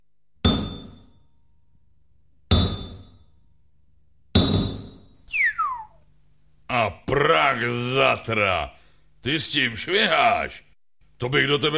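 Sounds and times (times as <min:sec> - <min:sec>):
heavy hammer striking metal: 0:00.4 - 0:01.4, 0:02.5 - 0:03.5, 0:04.3 - 0:05.2
quick falling whistle-like tone: 0:05.3 - 0:06.0
speech: 0:06.8 - 0:11.7.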